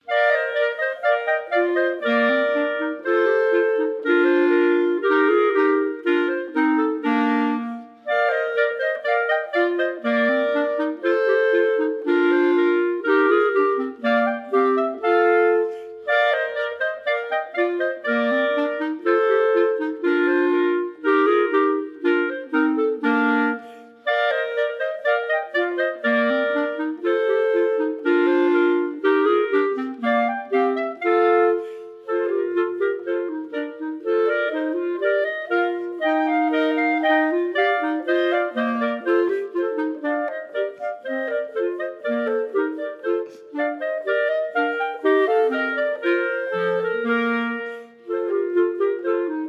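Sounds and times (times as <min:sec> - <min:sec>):
three clarinets playing a chamber march: 0:00.0 - 0:49.4.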